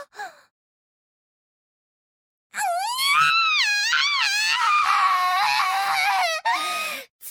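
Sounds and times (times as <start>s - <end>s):
person screaming: 2.6s - 6.8s.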